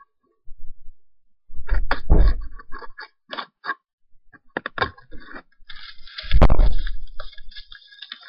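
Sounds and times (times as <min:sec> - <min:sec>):
microphone rustle: 0:01.6 - 0:02.8, 0:05.7 - 0:07.6.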